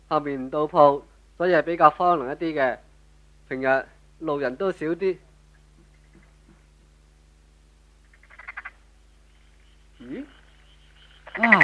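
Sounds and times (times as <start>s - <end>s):
speech: 0.1s - 2.9s, 3.5s - 5.2s, 11.4s - 11.6s
frogs croaking along a quiet, remote country path: 8.0s - 11.6s.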